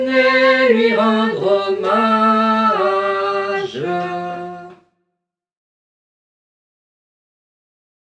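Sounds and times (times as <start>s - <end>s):
Christmas carol singing: 0.0s - 4.9s.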